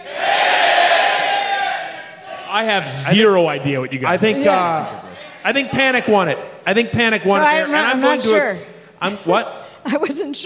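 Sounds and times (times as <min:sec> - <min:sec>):
live audience yelling in unison: 0:00.0 - 0:02.8
speech: 0:02.6 - 0:10.4.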